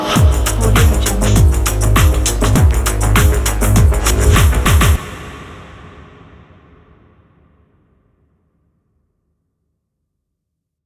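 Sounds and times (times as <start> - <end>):
caves logo jingle: 0.2 - 5.0.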